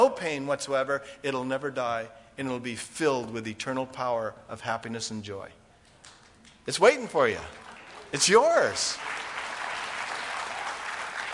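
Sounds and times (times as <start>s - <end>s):
speech: 0.0s - 5.6s, 6.6s - 9.2s
audience applause: 7.2s - 11.3s.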